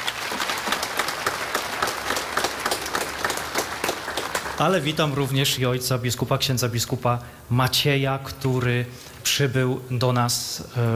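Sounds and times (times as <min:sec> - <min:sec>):
crowd applause: 0:00.0 - 0:05.4
speech: 0:04.6 - 0:10.9.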